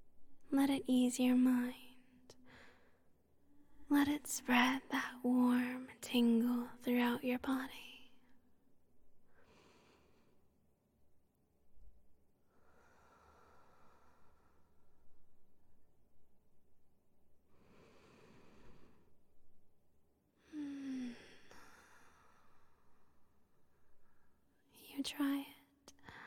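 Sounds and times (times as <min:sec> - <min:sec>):
speech: 0:00.5 - 0:01.8, 0:03.9 - 0:07.9
slow calm breathing of one person guiding a relaxation exercise: 0:02.3 - 0:03.8, 0:09.3 - 0:10.6, 0:12.5 - 0:15.3, 0:17.5 - 0:19.5, 0:20.4 - 0:24.5, 0:25.9 - 0:26.2.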